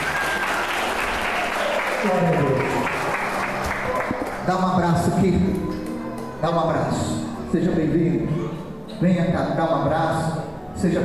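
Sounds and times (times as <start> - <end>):
audience applauding: 0.0 - 4.8
speech: 2.0 - 2.9, 4.5 - 5.8, 6.4 - 8.4, 9.0 - 11.0.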